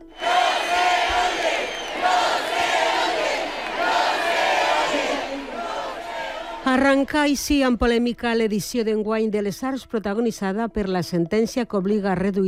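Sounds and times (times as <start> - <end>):
concert audience whistling in protest: 0.0 - 6.7
speech: 6.8 - 12.4.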